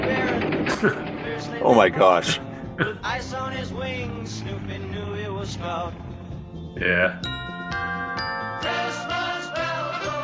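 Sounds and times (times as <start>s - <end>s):
laughter: 0.5s - 3.4s
speech: 0.8s - 6.1s, 6.8s - 7.8s
Christmas bells ringing: 7.2s - 10.2s.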